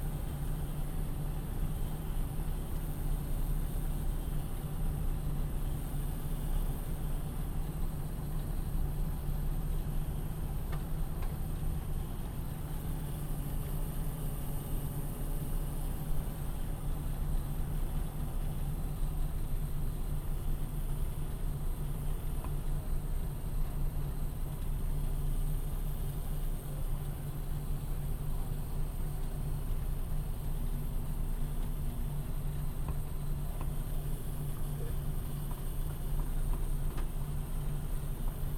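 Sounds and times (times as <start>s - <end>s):
twin engine light bomber taxiing heard from interior: 0.0s - 38.5s.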